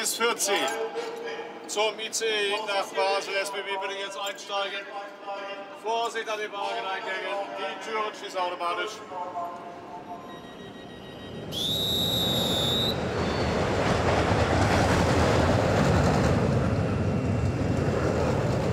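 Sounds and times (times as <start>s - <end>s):
speech: 0.1s - 9.7s, 11.5s - 12.4s
high metallic squeal of roller coaster wheels: 10.3s - 13.7s
roller coaster rumbling along its track on a test run: 11.5s - 18.7s.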